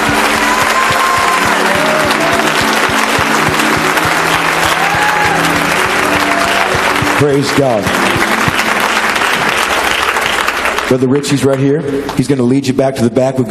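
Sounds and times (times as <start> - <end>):
audience clapping: 0.0 - 12.4
speech: 7.2 - 8.0, 10.9 - 13.4.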